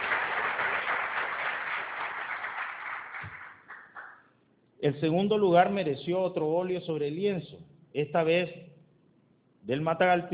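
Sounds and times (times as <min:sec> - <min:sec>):
audience applause: 0:00.0 - 0:04.2
speech: 0:04.8 - 0:08.7, 0:09.6 - 0:10.3.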